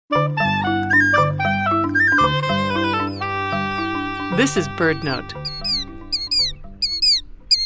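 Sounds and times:
killdeer calling: 0.8 - 7.6
speech: 4.4 - 5.5.

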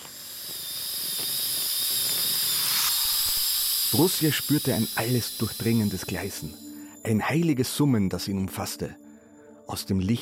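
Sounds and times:
small motorized bone saw whining: 0.0 - 7.6
speech: 3.9 - 9.0, 9.7 - 10.2.

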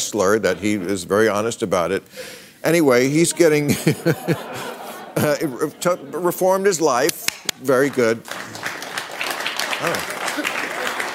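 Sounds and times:
speech: 0.1 - 8.6, 9.8 - 10.1
laughter: 3.1 - 6.6, 9.8 - 11.1
audience applauding: 7.2 - 11.1.

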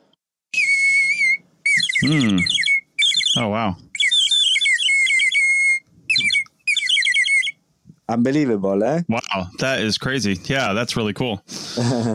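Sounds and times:
water-filled whistle warbling: 0.5 - 7.6
person exclaiming: 2.0 - 2.5
speech: 2.0 - 2.6, 3.4 - 3.8, 8.1 - 12.1.

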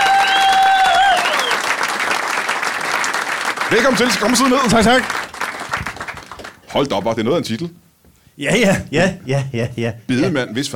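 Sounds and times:
studio audience clapping on a Danish talk show: 0.0 - 7.0
speech: 3.7 - 5.2, 6.7 - 7.8, 8.4 - 10.7.

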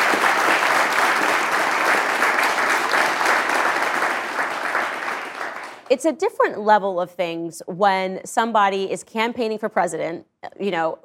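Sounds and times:
crowd clapping: 0.0 - 5.9
speech: 5.9 - 11.0.

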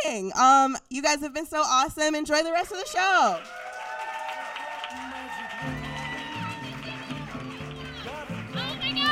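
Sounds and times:
speech: 0.1 - 3.6
audience applause: 3.3 - 9.1
upbeat music with bass line: 4.9 - 9.1.

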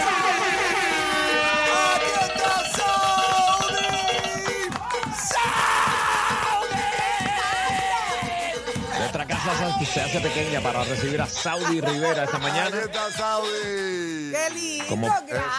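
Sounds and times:
studio audience applause: 0.0 - 8.4
studio audience cheering: 0.0 - 13.1
laughter: 8.9 - 15.5
speech: 9.8 - 15.5.

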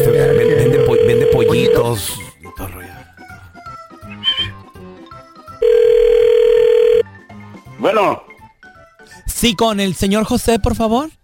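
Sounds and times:
short phone tones: 0.0 - 2.0, 5.6 - 7.0
speech: 1.9 - 2.2, 7.9 - 8.3, 9.4 - 11.2.

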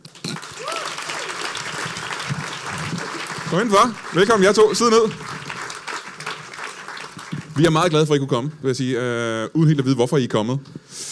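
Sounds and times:
audience clapping and cheering at a live comedy show in Aarhus: 0.0 - 7.9
speech: 3.5 - 5.3, 7.6 - 11.0.

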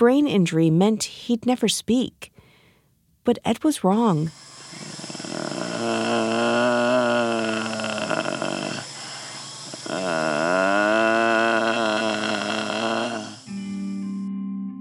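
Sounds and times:
speech: 0.0 - 2.3, 3.2 - 4.9, 5.8 - 6.3
deep humming from a man with a tracheostomy: 4.7 - 14.1.

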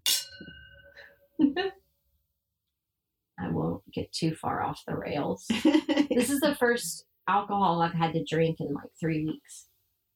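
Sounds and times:
glasses clinking in a toast: 0.0 - 1.2
speech: 1.4 - 1.8, 3.9 - 9.7.

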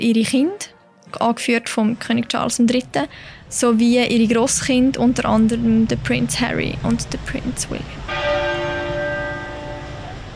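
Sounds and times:
speech: 0.0 - 8.2
Big Ben bell tolling during funeral procession: 7.9 - 10.3.

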